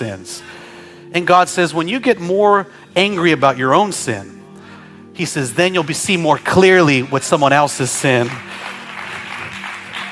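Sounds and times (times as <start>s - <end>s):
speech: 0.0s - 4.4s, 5.2s - 8.7s
audience clapping: 5.7s - 10.1s.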